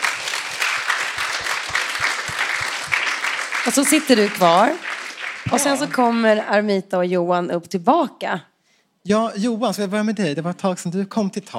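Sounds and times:
audience applause: 0.0s - 6.3s
speech: 3.6s - 11.5s.

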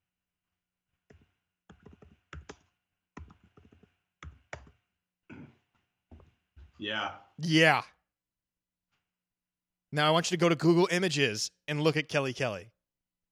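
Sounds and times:
typing on a computer keyboard: 1.1s - 4.8s
speech: 6.8s - 8.0s, 9.9s - 12.8s.

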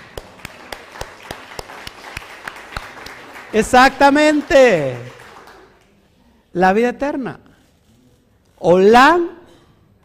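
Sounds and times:
applause for the sister: 0.0s - 6.0s
speech: 3.5s - 5.2s, 6.6s - 7.4s, 8.6s - 9.4s.

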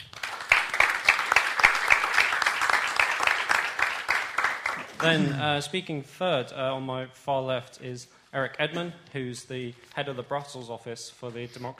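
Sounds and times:
audience applause welcoming a panel speaker at a Brexit debate: 0.0s - 5.4s
speech: 5.0s - 11.7s.

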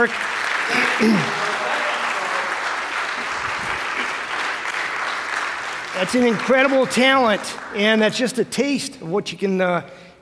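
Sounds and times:
speech: 0.0s - 1.5s, 6.0s - 10.1s
brief vocal cheer: 0.0s - 4.2s
crowd applauding: 0.0s - 8.4s.

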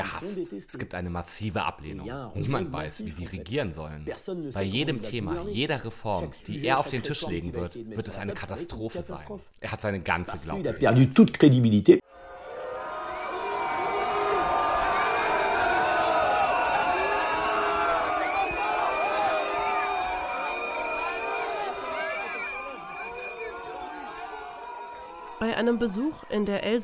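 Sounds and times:
speech: 0.0s - 12.0s, 25.6s - 26.8s
large crowd booing: 12.1s - 26.4s
scattered shouts from the crowd: 12.2s - 26.1s.

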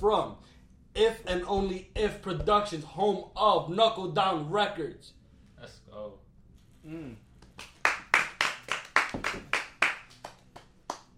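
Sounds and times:
speech: 0.0s - 6.2s, 6.8s - 7.2s
hand clapping: 7.4s - 11.1s.

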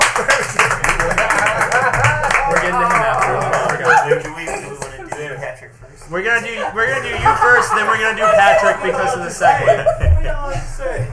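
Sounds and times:
applause: 0.0s - 5.5s
laughter: 0.0s - 5.5s, 6.1s - 11.1s
speech: 7.8s - 10.7s.

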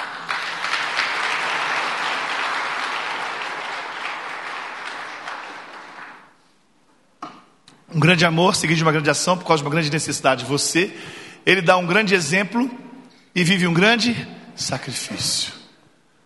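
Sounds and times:
crowd applauding: 0.0s - 6.4s
speech: 8.0s - 12.8s, 13.4s - 15.6s.

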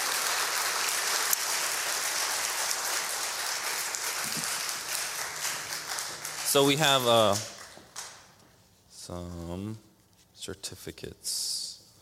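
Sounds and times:
crowd applauding: 0.0s - 8.3s
speech: 6.5s - 7.5s, 9.1s - 11.7s.

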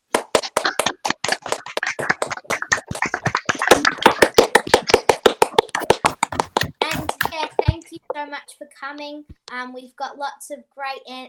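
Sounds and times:
round of applause: 0.2s - 7.6s
speech: 8.6s - 11.2s.

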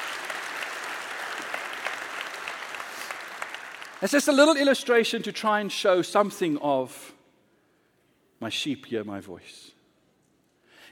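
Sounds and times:
audience applause: 0.0s - 4.1s
speech: 4.0s - 7.1s, 8.4s - 9.8s.

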